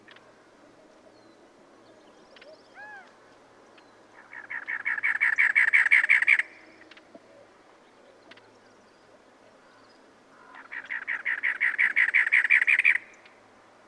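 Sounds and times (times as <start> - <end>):
cactus wren calling: 2.3 - 3.2, 3.8 - 8.6, 10.4 - 13.4.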